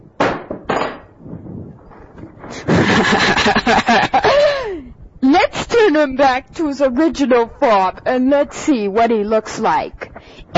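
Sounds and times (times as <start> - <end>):
sharp knocks: 0.2 - 1.2
laughter: 2.5 - 4.8
speech: 6.0 - 10.0.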